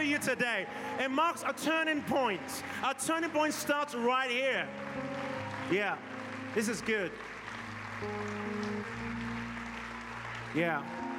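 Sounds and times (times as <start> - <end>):
speech: 0.0 - 7.3, 8.0 - 8.4, 10.5 - 11.1
audience clapping: 0.0 - 11.1
sustained held keyboard chords: 3.5 - 11.1.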